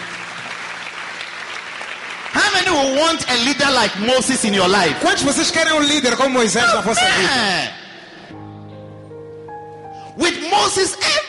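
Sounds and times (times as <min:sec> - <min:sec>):
crowd applauding: 0:00.0 - 0:04.8
speech: 0:02.6 - 0:07.8, 0:10.6 - 0:11.0.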